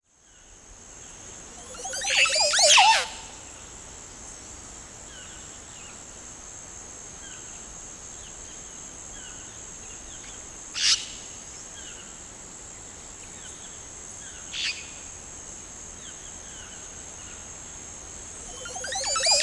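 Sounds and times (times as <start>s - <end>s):
Montezuma oropendola Psarocolius montezuma song: 1.6s - 3.3s, 18.5s - 19.4s.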